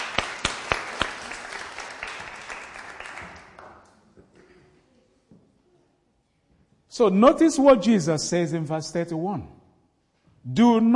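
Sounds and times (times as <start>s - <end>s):
audience applause: 0.0s - 3.9s
speech: 7.0s - 9.6s, 10.5s - 10.9s.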